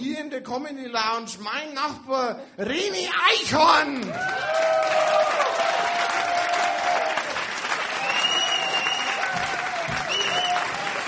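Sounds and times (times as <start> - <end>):
speech: 0.0 - 5.7
live audience applause: 4.1 - 11.0
whoops and cheers: 4.1 - 11.0.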